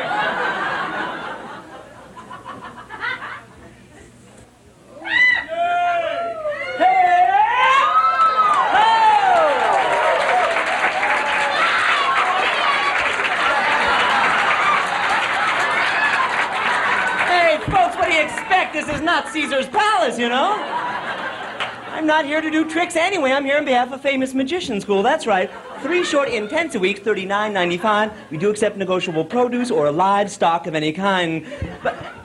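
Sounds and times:
laughter: 0.0s - 4.2s, 9.6s - 22.7s, 25.2s - 27.0s, 27.9s - 29.6s, 31.4s - 32.2s
audience cheering and whooping: 5.0s - 21.9s
audience clapping: 8.2s - 19.0s, 21.5s - 21.9s
speech: 22.1s - 32.0s.

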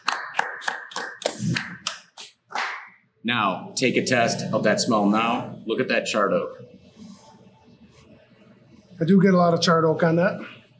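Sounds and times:
hand clapping: 0.0s - 3.0s
speech: 3.2s - 6.8s, 9.0s - 10.6s.

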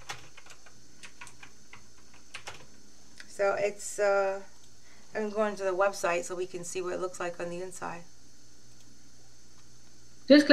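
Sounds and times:
computer keyboard keystrokes typing a web search: 0.0s - 2.7s
soft steady hiss: 0.0s - 10.5s
speech: 3.4s - 4.5s, 5.1s - 8.1s, 10.3s - 10.5s.

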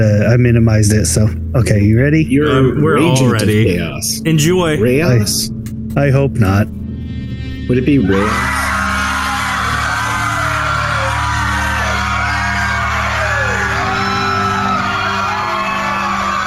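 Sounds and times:
speech: 0.0s - 6.8s, 7.7s - 8.7s
crowd screaming: 8.0s - 16.4s.

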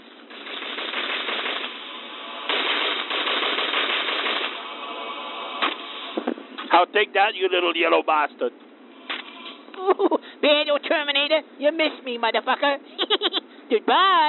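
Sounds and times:
9mm Uzi submachine gun firing: 0.3s - 4.6s
speech: 6.8s - 8.7s, 9.8s - 14.2s
laughter: 9.8s - 10.2s, 13.0s - 13.5s.

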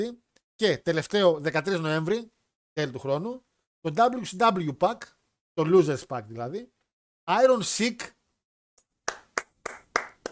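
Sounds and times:
speech: 0.0s - 8.2s
applause sound effect: 9.0s - 10.3s.

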